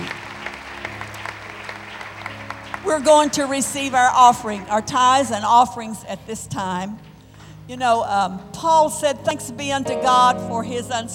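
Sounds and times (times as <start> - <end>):
seated audience clapping hands: 0.0 - 5.2
speech: 2.9 - 7.1, 7.7 - 11.1.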